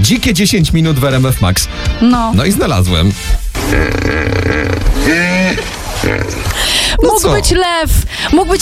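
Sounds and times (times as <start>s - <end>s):
speech: 0.0s - 8.6s
hippopotamus calling with grunts and honking bellow: 3.5s - 7.5s.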